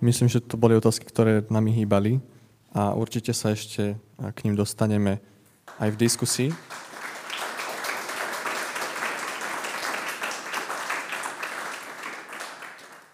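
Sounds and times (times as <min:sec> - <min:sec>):
speech: 0:00.0 - 0:06.9
audience applauding after a presentation: 0:05.7 - 0:13.1.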